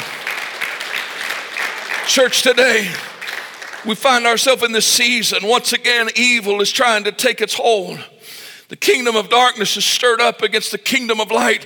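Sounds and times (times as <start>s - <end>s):
audience hand clapping: 0.0s - 4.6s
speech: 2.1s - 3.1s, 3.8s - 11.6s.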